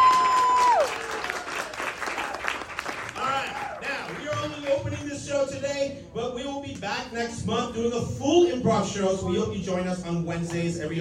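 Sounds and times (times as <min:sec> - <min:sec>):
audience clapping to welcome the cast of an improv comedy show: 0:00.0 - 0:05.2
speech: 0:07.0 - 0:10.9.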